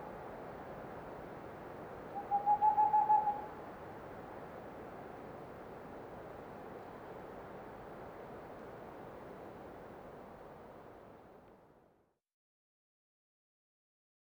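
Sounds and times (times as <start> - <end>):
male Tengmalm's owl hooting: 2.2 - 3.6.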